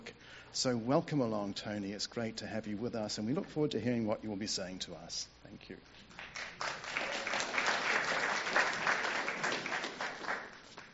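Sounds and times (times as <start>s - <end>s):
speech: 0.5s - 6.1s
audience applause: 6.2s - 10.9s.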